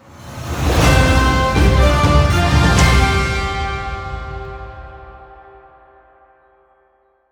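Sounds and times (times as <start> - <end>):
epic victory logo music: 0.8 - 5.7.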